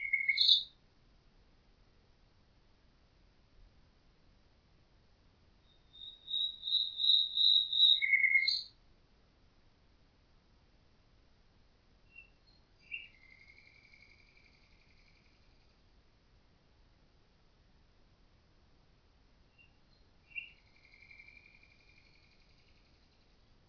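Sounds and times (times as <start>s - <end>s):
common nightingale singing with whistled notes and fast rattling trill: 0.0s - 0.8s, 5.6s - 8.8s, 12.0s - 15.8s, 19.5s - 23.5s.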